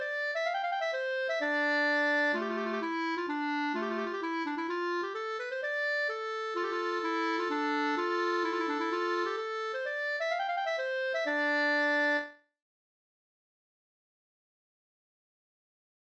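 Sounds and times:
polska springlek folk dance music: 0.0s - 12.3s.

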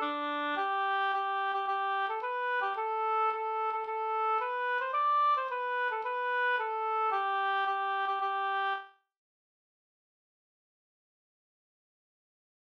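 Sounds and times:
Norwegian folk bridal march: 0.0s - 8.8s.

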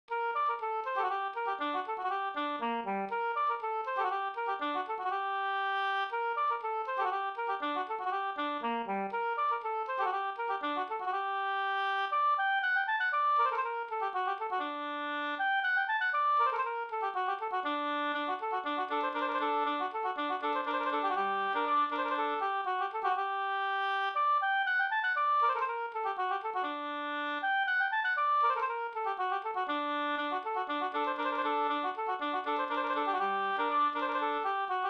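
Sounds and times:
Swedish polska folk tune: 0.4s - 34.8s.

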